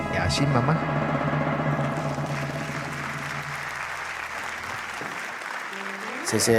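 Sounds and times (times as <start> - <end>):
low hum: 0.1 - 4.6
speech: 0.2 - 1.2, 6.3 - 6.5
audience clapping: 1.8 - 6.5.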